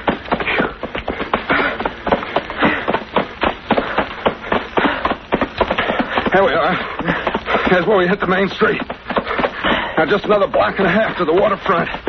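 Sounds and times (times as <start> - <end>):
footsteps running through knee-deep dry leaves in the dark: 0.0 - 12.0
speech: 6.3 - 9.0, 10.0 - 12.0.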